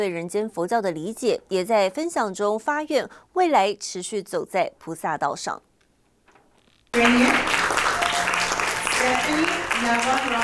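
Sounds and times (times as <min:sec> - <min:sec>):
speech: 0:00.0 - 0:05.7, 0:09.0 - 0:10.4
warm applause at a ceremony: 0:06.9 - 0:10.4.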